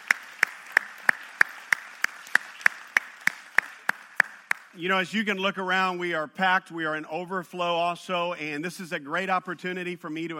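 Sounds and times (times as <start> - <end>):
sharp hand claps at a church service welcoming guests: 0.0 - 4.8
speech: 4.8 - 10.3.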